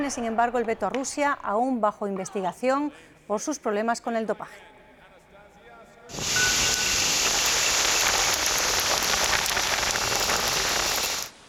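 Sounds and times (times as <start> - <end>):
speech: 0.1 - 4.8, 6.1 - 6.4
heavy rain during a thunderstorm: 6.1 - 11.4.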